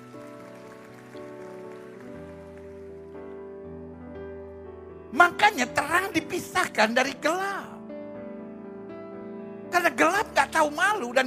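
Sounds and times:
audience applause: 0.0 - 3.5
speech: 5.1 - 7.7, 9.9 - 11.2.

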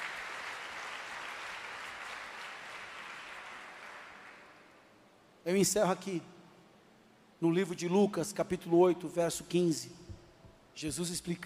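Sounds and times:
crowd applause: 0.0 - 4.7
speech: 5.4 - 6.3, 7.4 - 10.0, 10.8 - 11.4.

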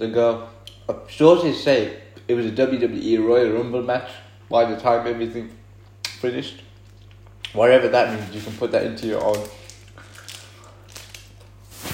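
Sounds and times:
speech: 0.0 - 5.6, 6.2 - 6.6, 7.5 - 9.6
crunchy chocolate being bitten and chewed: 9.0 - 11.5.

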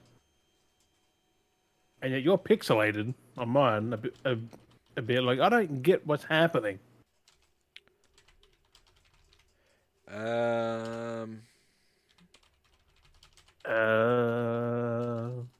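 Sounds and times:
speech: 2.0 - 6.9, 10.1 - 11.5, 13.7 - 15.1
typing a ChatGPT prompt on a computer keyboard: 7.2 - 9.7, 10.7 - 11.1, 12.1 - 15.5.

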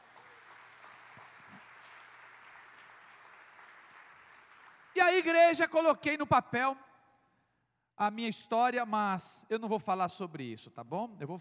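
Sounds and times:
audience applause: 0.0 - 5.3
speech: 5.0 - 6.9, 8.0 - 11.4.

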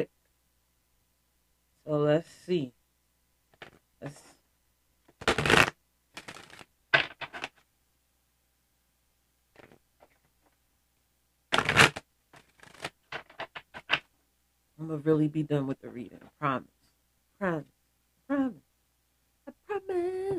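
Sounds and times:
speech: 1.9 - 2.8, 4.0 - 4.3, 14.8 - 16.8, 17.4 - 18.6, 19.7 - 20.3
Angel Guide Oracle deck cards being shuffled: 3.6 - 4.2, 5.1 - 7.6, 9.5 - 10.6, 11.5 - 14.1
card being drawn from an Angel Guide Oracle deck: 5.2 - 7.6, 11.5 - 14.0.

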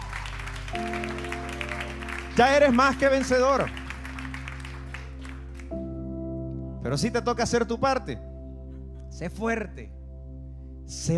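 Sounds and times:
crowd clapping: 0.0 - 5.9
sustained low keyboard chords: 0.0 - 11.1
speech: 2.4 - 3.8, 6.9 - 8.3, 9.2 - 10.0, 10.9 - 11.1.

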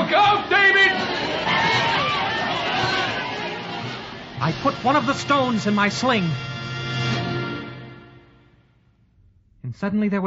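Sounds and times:
armies shouting on both sides: 0.0 - 5.2
speech: 4.4 - 6.5, 9.8 - 10.2.

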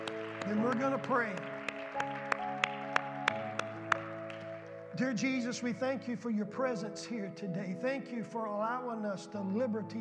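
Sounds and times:
audience hand clapping: 0.0 - 4.8
speech: 0.5 - 2.2, 5.0 - 9.9.

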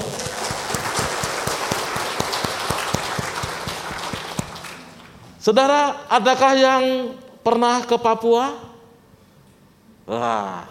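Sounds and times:
applause: 0.0 - 5.2
speech: 5.5 - 8.7, 10.1 - 10.6.

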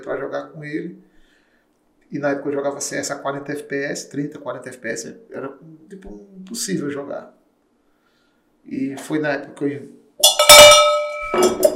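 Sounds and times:
speech: 0.0 - 1.1, 2.1 - 7.4, 8.6 - 10.8
metallic bell ringing: 10.2 - 11.7.

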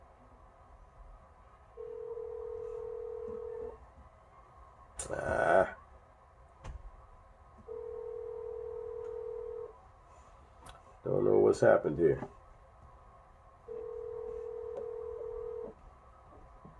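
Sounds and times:
telephone keypad dialing tones: 1.8 - 3.7, 7.7 - 9.7, 13.7 - 15.8
speech: 5.0 - 5.8, 11.0 - 12.4.

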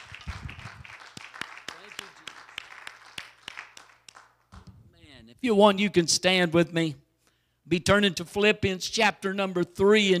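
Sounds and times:
audience hand clapping: 0.0 - 4.7
speech: 5.4 - 7.0, 7.7 - 10.1.

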